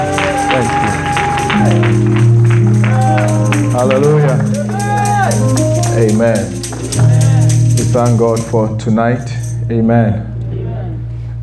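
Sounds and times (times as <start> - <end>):
church congregation applauding to welcome a pastor to the pulpit: 0.0 - 8.7
held musical tones: 0.0 - 11.4
speech: 8.0 - 10.3.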